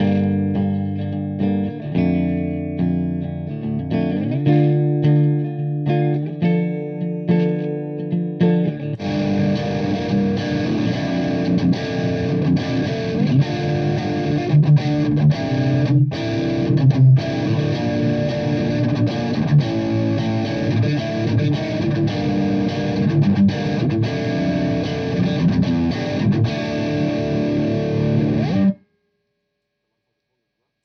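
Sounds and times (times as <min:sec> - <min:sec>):
high-gain distortion pedal guitar: 0:00.0 - 0:28.8.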